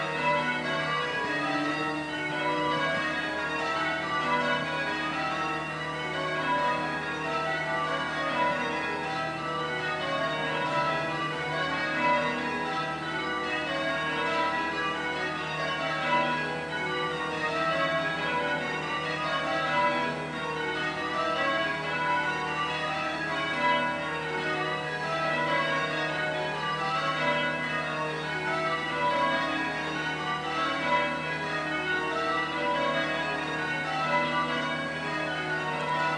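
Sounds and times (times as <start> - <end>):
church bells ringing: 0.0 - 36.1.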